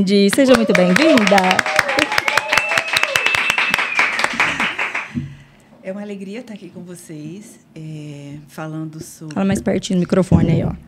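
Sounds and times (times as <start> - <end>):
speech: 0.0 - 1.8, 5.9 - 10.8
applause: 0.2 - 5.2.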